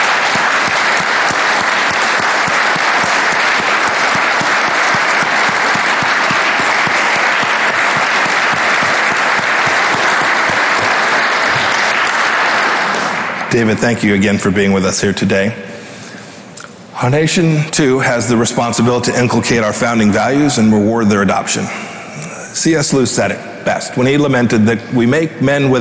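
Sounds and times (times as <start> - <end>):
crowd round of applause: 0.0 - 13.8
speech: 13.6 - 15.7, 17.0 - 21.9, 22.6 - 25.8.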